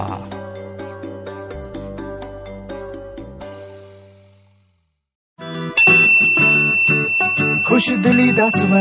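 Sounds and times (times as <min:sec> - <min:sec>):
Punjabi ringtone: 0:05.8 - 0:08.7.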